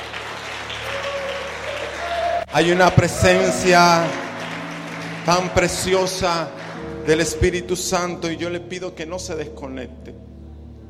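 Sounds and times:
audience clapping hands: 0:00.0 - 0:07.7
speech: 0:02.5 - 0:04.2, 0:05.3 - 0:10.3.

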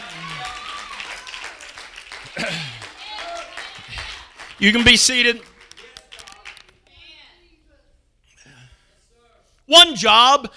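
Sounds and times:
audience clapping: 0:00.0 - 0:06.9
speech: 0:02.4 - 0:02.7, 0:04.6 - 0:05.5, 0:10.0 - 0:10.5.

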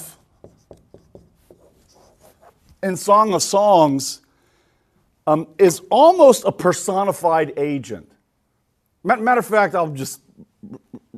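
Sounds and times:
writing on a board: 0:00.0 - 0:02.7
speech: 0:02.8 - 0:04.2, 0:05.3 - 0:08.1, 0:09.0 - 0:11.1.

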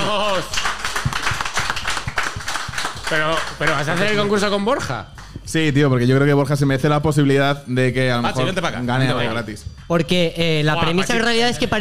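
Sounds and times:
audience applause: 0:00.0 - 0:04.6
speech: 0:03.1 - 0:11.8.

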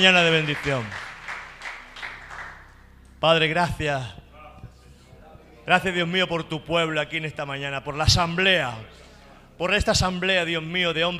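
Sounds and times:
speech: 0:00.0 - 0:01.0, 0:03.2 - 0:04.2, 0:05.7 - 0:09.0, 0:09.6 - 0:11.1
audience applause: 0:00.0 - 0:02.8.

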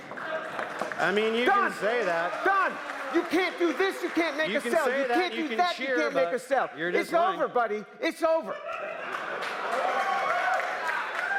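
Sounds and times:
audience cheering: 0:00.3 - 0:05.6, 0:08.8 - 0:11.3
speech: 0:01.0 - 0:08.8
laughter: 0:08.2 - 0:10.3.

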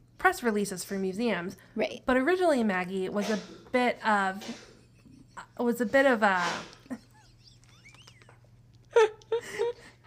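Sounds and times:
speech: 0:00.2 - 0:04.7, 0:05.6 - 0:06.8
sneeze: 0:03.2 - 0:03.7, 0:04.4 - 0:04.8, 0:06.3 - 0:06.9.

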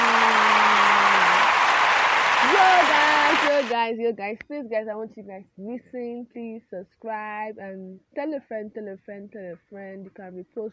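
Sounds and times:
applause: 0:00.0 - 0:03.8
speech: 0:02.6 - 0:10.7.

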